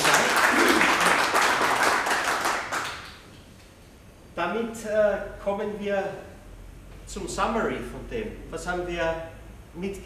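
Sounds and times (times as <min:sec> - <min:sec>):
applause: 0:00.0 - 0:03.3
speech: 0:04.5 - 0:06.3, 0:07.1 - 0:10.0.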